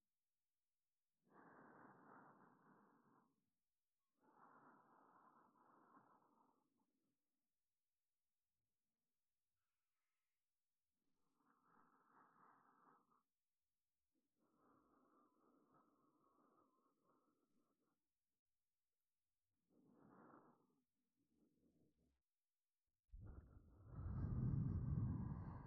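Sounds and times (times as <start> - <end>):
breathing in the left ear: 1.2 - 7.0, 11.2 - 13.4, 14.3 - 18.0, 19.7 - 21.8, 23.1 - 25.6.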